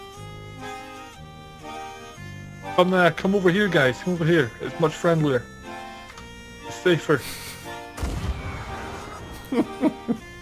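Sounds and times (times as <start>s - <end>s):
speech: 2.8s - 5.6s, 6.8s - 7.4s
laughter: 7.2s - 7.9s, 8.7s - 10.3s
gunshot in a pirate video game: 8.0s - 10.0s.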